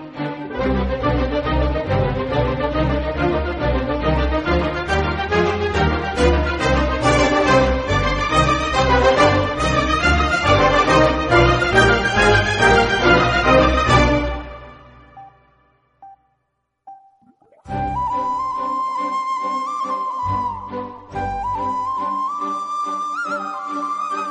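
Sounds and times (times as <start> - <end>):
instrumental flute music: 0.2 - 15.5, 16.9 - 24.3.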